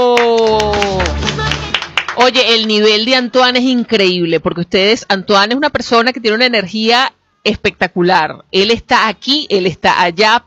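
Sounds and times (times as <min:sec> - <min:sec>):
crowd applause: 0:00.0 - 0:02.2
speech: 0:02.2 - 0:10.4.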